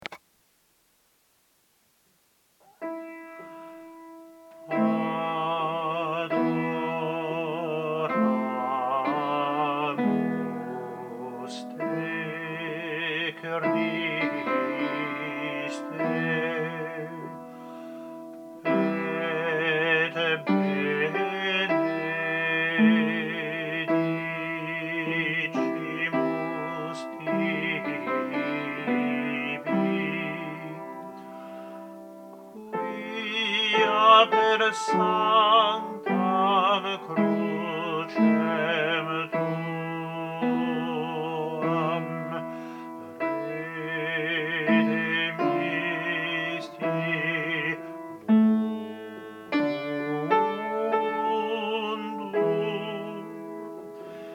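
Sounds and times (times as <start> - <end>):
alto voice singing a choral work: 2.6 - 54.3.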